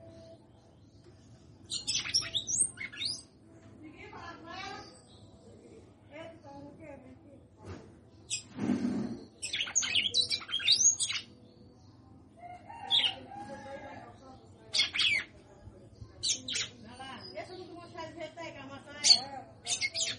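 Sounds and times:
female red-cowled cardinal singing: 0:00.0 - 0:03.6, 0:08.1 - 0:13.4, 0:14.4 - 0:15.3, 0:16.2 - 0:20.1.

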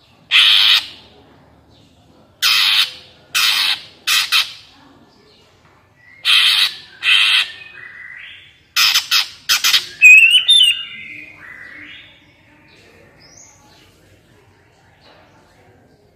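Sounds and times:
greater green leafbird squawking: 0:00.3 - 0:01.0, 0:02.4 - 0:04.7, 0:06.2 - 0:12.2.

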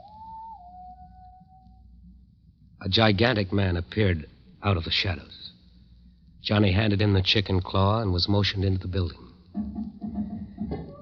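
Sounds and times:
quiet human whistle: 0:00.0 - 0:02.1
speech: 0:02.9 - 0:05.4, 0:06.4 - 0:09.9.

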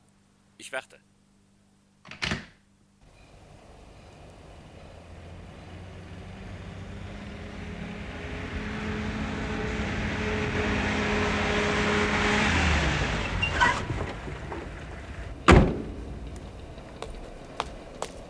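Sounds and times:
speech: 0:00.6 - 0:01.2
car engine rumble as the car drives up: 0:03.0 - 0:18.2
sharp knock-like thud: 0:15.5 - 0:16.0.

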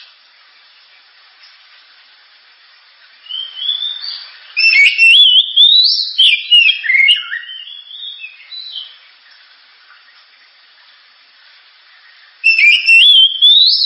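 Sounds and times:
Oriental magpie-robin song: 0:03.3 - 0:08.9, 0:12.4 - 0:13.8.

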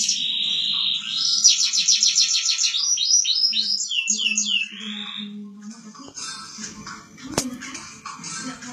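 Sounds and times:
champion singing canary song: 0:00.0 - 0:05.6.

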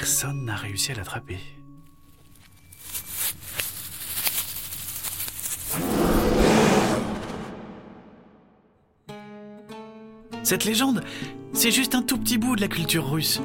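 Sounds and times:
speech: 0:00.0 - 0:01.6, 0:10.5 - 0:13.4
powerful howl: 0:05.7 - 0:07.9.

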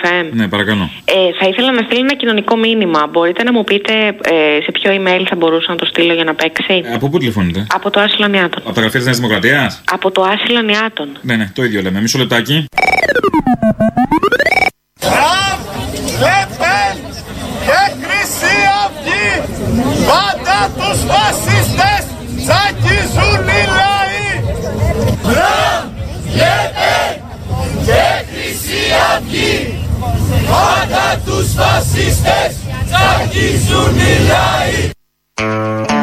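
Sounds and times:
speech: 0:00.0 - 0:15.4, 0:28.9 - 0:36.0
SYRIZA youth crowd chanting slogans against Trump: 0:15.0 - 0:35.0.

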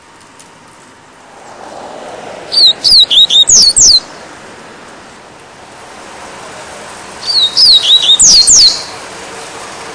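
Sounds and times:
double-collared seedeater whistled song: 0:02.5 - 0:04.1, 0:07.2 - 0:09.0.

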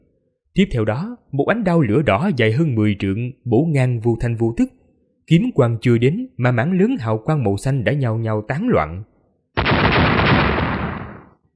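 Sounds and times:
speech: 0:00.6 - 0:09.1
crisp explosion blasts: 0:09.6 - 0:11.4.

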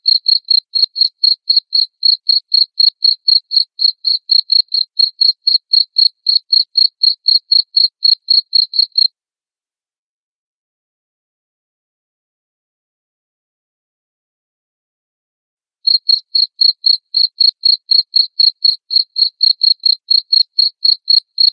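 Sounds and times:
cricket chirping: 0:00.0 - 0:09.1, 0:15.9 - 0:21.5.

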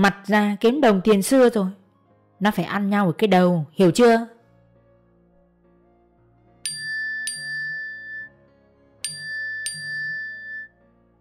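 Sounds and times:
speech: 0:00.0 - 0:01.8, 0:02.4 - 0:04.3
phone text message notification tone: 0:06.7 - 0:08.3, 0:09.0 - 0:10.7.

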